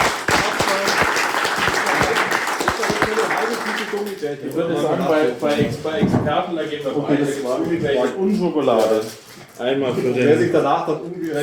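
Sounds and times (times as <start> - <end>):
applause: 0.0 - 4.2
speech: 4.3 - 11.4.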